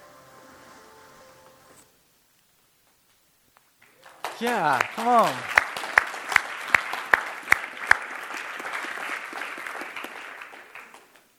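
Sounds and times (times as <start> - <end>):
audience clapping: 3.6 - 11.3
speech: 4.4 - 5.6.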